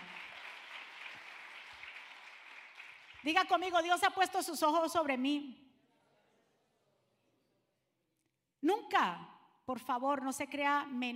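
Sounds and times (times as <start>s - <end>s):
audience applauding: 0.0s - 3.3s
speech: 3.2s - 5.6s, 9.0s - 11.1s.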